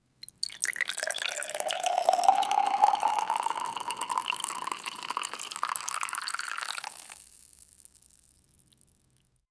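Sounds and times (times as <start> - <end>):
liquid pouring into a cup: 0.2 - 7.4.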